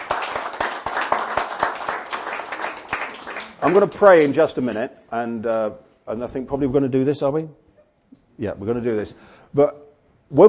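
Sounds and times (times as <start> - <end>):
audience applause: 0.0 - 4.4
speech: 3.6 - 7.6, 8.4 - 10.4.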